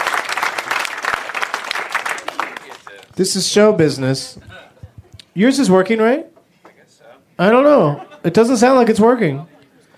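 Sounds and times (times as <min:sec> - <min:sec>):
audience applause: 0:00.0 - 0:03.2
speech: 0:03.2 - 0:04.5, 0:05.4 - 0:06.3, 0:07.4 - 0:09.5.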